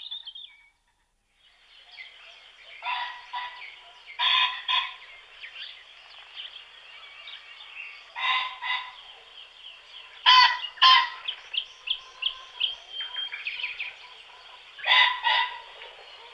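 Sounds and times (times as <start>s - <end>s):
common pheasant crowing: 2.8s - 5.2s, 7.3s - 16.3s.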